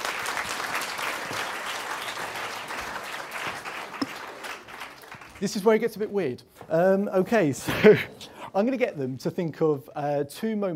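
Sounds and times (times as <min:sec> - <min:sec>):
crowd applauding: 0:00.0 - 0:05.9
speech: 0:05.4 - 0:10.7.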